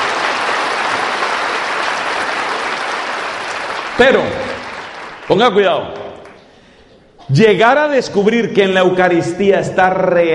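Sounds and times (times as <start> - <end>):
audience applause: 0.0 - 6.4
speech: 4.0 - 4.5, 5.3 - 6.0, 7.3 - 10.3.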